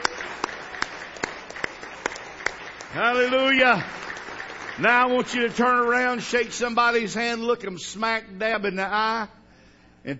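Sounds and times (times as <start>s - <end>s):
audience clapping in praise: 0.0s - 7.0s
speech: 2.9s - 4.0s, 4.8s - 9.4s.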